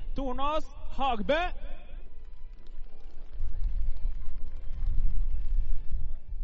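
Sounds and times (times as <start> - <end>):
speech: 0.2 - 1.7
crowd applauding: 2.1 - 6.3.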